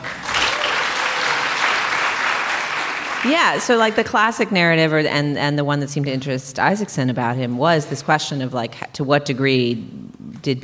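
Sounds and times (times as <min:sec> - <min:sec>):
audience clapping: 0:00.0 - 0:04.1
speech: 0:03.2 - 0:10.6.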